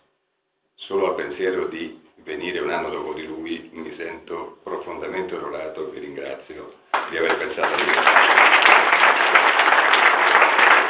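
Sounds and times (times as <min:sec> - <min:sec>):
speech: 0:00.9 - 0:09.8
audience applause: 0:06.9 - 0:10.8.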